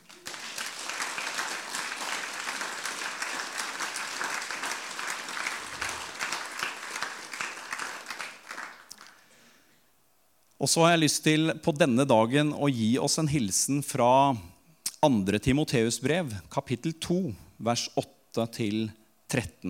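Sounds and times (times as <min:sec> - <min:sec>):
audience applause: 0:00.0 - 0:09.3
speech: 0:10.6 - 0:19.6.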